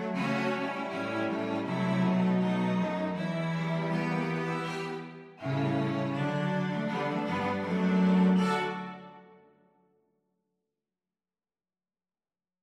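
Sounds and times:
cello quartet: 0.0 - 9.4.

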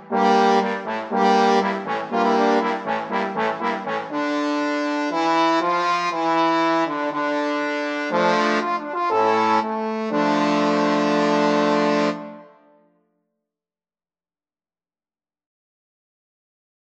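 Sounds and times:
trombone quartet playing: 0.0 - 12.6.

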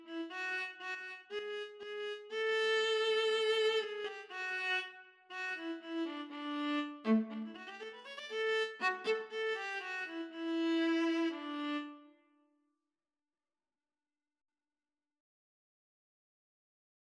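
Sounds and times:
viola: 0.0 - 12.1.

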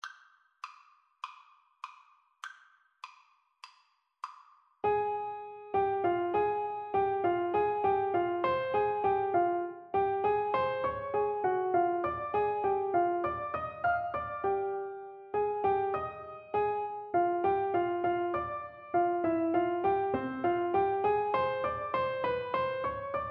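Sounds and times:
four-hands piano duet: 4.8 - 23.2.

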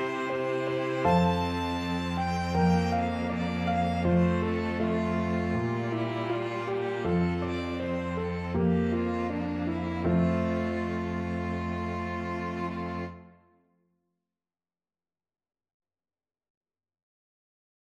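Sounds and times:
piano quartet playing: 0.0 - 13.3.

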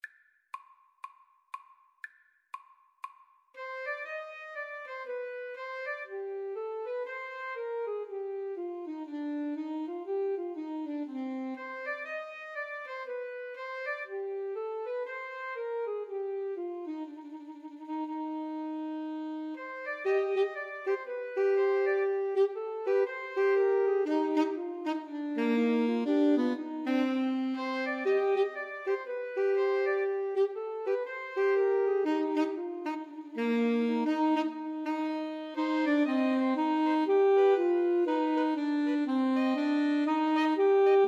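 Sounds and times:
two alto saxophones and tenor saxophone playing a bourree: 3.6 - 41.0.

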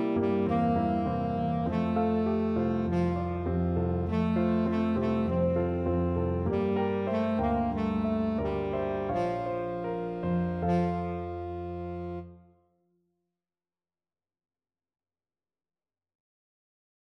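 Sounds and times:
tenor saxophone: 0.0 - 12.5.

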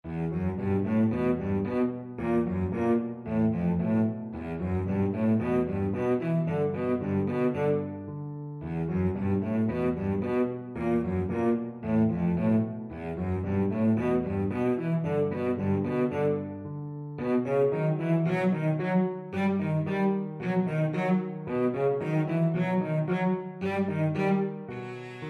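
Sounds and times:
violoncello: 0.0 - 25.2.

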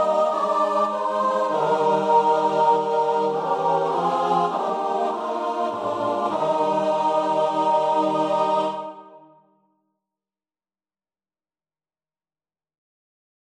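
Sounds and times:
choir singing: 0.0 - 9.5.

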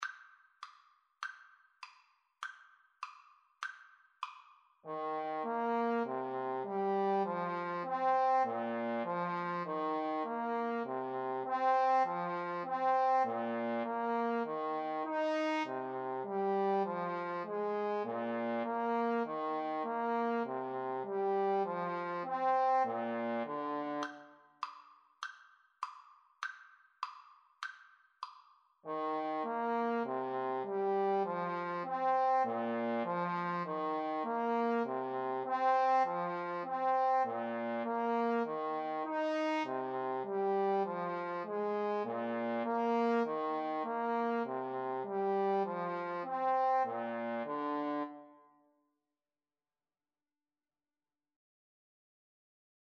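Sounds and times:
trumpet and trombone duet: 4.9 - 24.2, 28.9 - 48.2.

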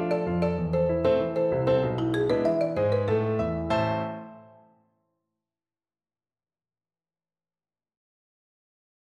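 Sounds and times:
marimba: 0.0 - 4.0.

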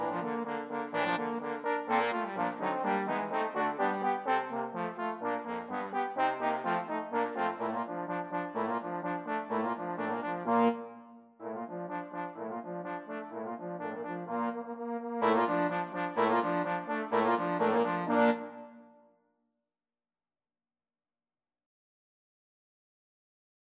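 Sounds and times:
trombone quartet: 0.0 - 10.8, 11.4 - 18.5.

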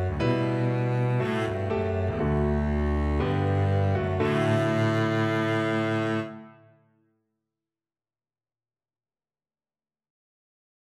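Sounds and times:
double bass playing a wedding march: 0.0 - 6.4.

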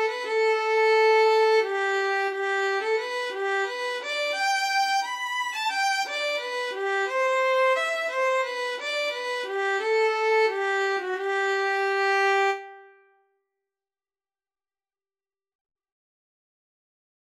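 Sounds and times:
violin and cello duet: 0.0 - 12.6.

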